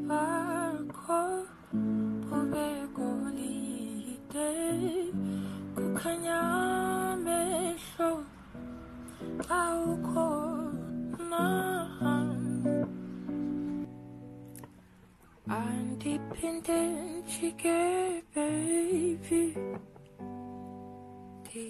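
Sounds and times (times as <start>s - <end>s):
a cappella singing: 0.0s - 8.4s, 9.4s - 12.9s, 15.5s - 19.8s.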